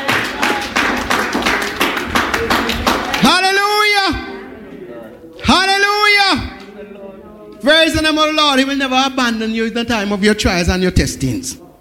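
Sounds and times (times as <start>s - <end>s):
audience clapping: 0.0s - 4.4s, 6.4s - 6.8s
speech: 7.6s - 11.7s.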